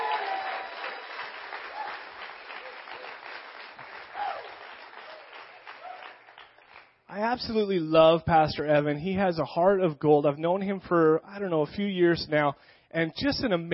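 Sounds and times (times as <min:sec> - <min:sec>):
audience applause and cheering: 0:00.0 - 0:07.0
speech: 0:07.2 - 0:13.7.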